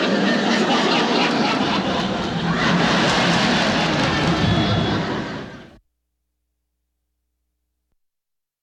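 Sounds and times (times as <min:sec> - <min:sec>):
audience laughing: 0:00.0 - 0:05.8.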